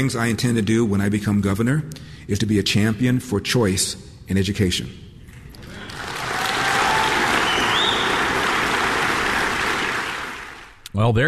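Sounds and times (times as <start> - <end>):
speech: 0.0 - 5.1, 11.0 - 11.2
crowd applause: 5.5 - 10.8.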